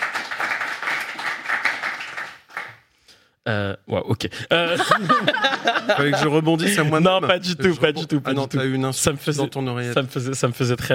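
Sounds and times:
applause: 0.0 - 3.0
speech: 3.5 - 10.9
laughter: 4.4 - 8.3.

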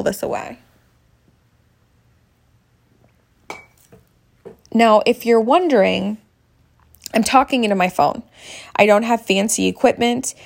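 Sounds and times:
speech: 0.0 - 0.7, 4.8 - 6.2, 7.1 - 10.4
ceramic coffee cup clinking: 3.5 - 4.6.

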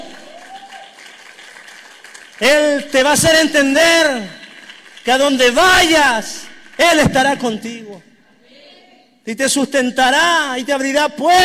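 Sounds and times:
crowd applause: 0.0 - 2.8, 4.3 - 5.7
speech: 2.4 - 4.4, 5.0 - 8.1, 9.3 - 11.4.

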